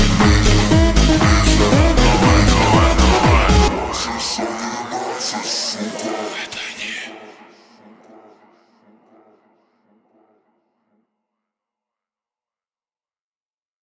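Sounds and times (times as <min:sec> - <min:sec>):
slowed reverb music: 0:00.0 - 0:11.0.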